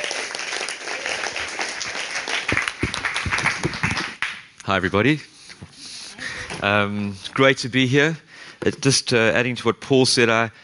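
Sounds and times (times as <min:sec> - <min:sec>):
audience applause: 0:00.0 - 0:04.4
speech: 0:04.7 - 0:05.3, 0:06.6 - 0:10.6.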